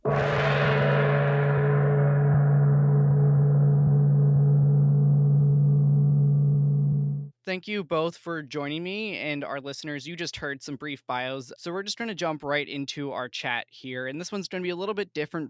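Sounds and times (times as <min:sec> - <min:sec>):
gong: 0:00.0 - 0:07.3
speech: 0:07.5 - 0:15.4.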